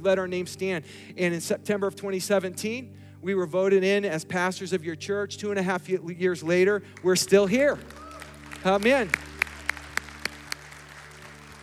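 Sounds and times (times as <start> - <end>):
speech: 0.0 - 8.0, 8.6 - 9.6
low constant hum: 0.0 - 11.6
audience clapping: 6.9 - 11.6.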